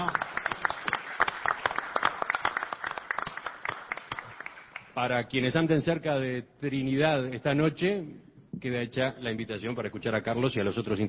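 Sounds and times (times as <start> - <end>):
crowd applauding: 0.0 - 5.0
speech: 5.0 - 11.0.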